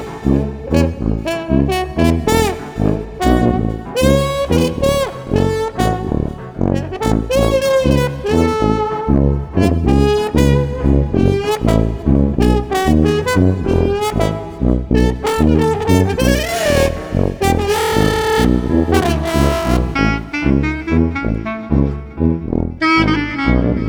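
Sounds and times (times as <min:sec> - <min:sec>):
bouncy street brass music: 0:00.0 - 0:23.8.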